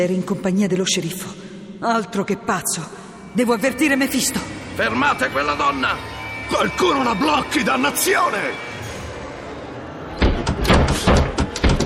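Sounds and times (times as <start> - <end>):
speech: 0.0 - 8.7
door slammed shut in a radio drama: 10.1 - 11.8.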